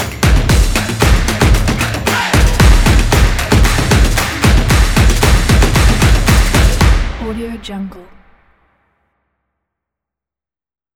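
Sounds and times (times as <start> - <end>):
sport intro music: 0.0 - 7.4.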